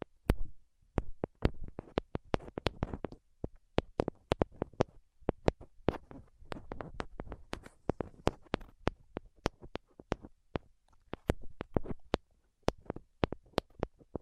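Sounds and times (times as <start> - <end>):
sharp tapping clicks: 1.0 - 14.2
softer rustling: 1.0 - 14.2.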